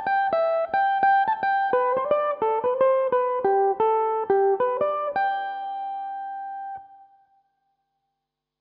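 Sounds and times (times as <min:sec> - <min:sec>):
Irish electric mandolin playing a jig in G major: 0:00.0 - 0:07.0.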